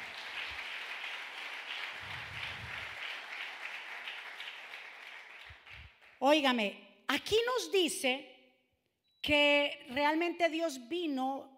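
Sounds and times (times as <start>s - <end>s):
crowd applauding: 0.0s - 6.2s
speech: 6.2s - 8.3s, 9.3s - 11.5s.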